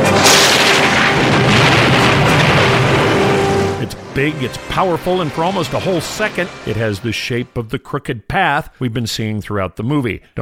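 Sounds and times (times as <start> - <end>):
lightning bolt strike: 0.0 - 7.0
speech: 4.2 - 10.4.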